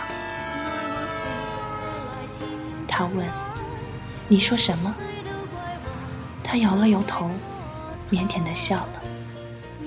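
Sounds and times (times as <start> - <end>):
train horn: 0.0 - 4.9
speech: 3.0 - 3.4, 4.3 - 5.2, 6.5 - 7.5, 8.1 - 9.0.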